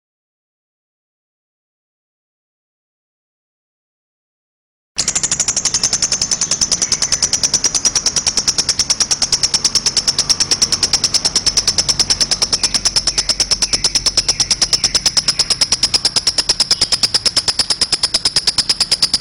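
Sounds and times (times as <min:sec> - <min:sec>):
lovebird chirping chatter: 0:05.0 - 0:19.1.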